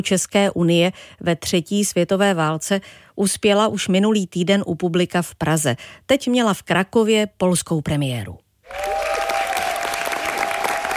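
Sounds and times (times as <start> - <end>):
speech: 0.0 - 9.0
theatre audience in Kraków applauding at end of performance: 8.7 - 10.9.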